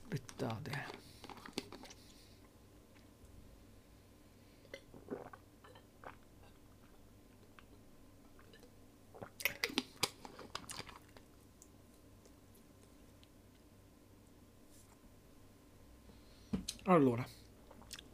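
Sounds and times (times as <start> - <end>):
person drinking water: 0.7 - 3.1, 4.6 - 7.8, 8.4 - 11.3, 17.6 - 18.1
speech: 16.9 - 17.4.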